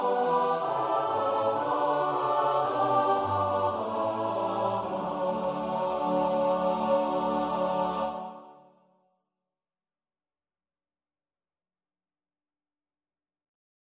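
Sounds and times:
soprano alto tenor bass voices: 0.0 - 8.5.

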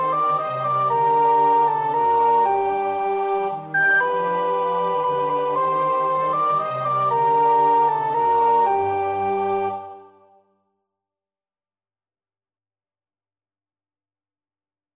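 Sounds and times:
soprano practising a choir part: 0.0 - 10.4.

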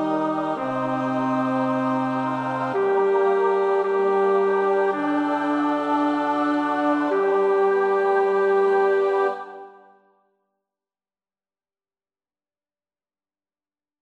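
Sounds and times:
bass: 0.0 - 9.4.

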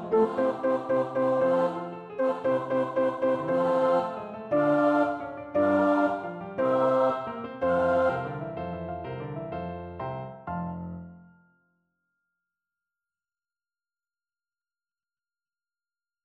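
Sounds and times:
tenor voice singing a choir part practice: 0.0 - 8.4.

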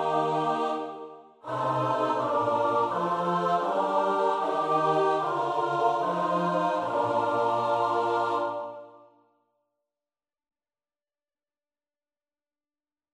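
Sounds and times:
SATB choir part practice: 0.0 - 9.1.

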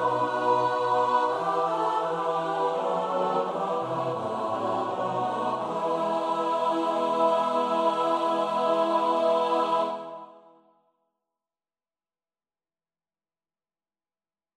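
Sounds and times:
soprano alto tenor bass voices: 0.0 - 10.1.

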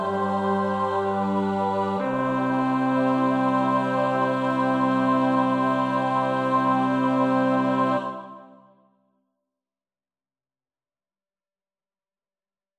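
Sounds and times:
bass choir part practice: 0.0 - 8.6.

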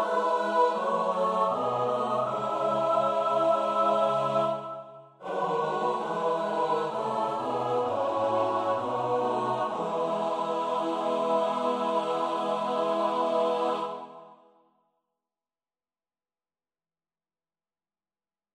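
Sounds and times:
soprano alto tenor bass voices: 0.0 - 14.1.

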